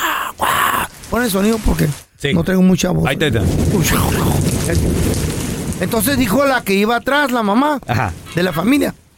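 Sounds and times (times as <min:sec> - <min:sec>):
speech: 0:01.1 - 0:05.2, 0:05.8 - 0:09.0
thunder from a strong electrical storm: 0:02.7 - 0:09.1.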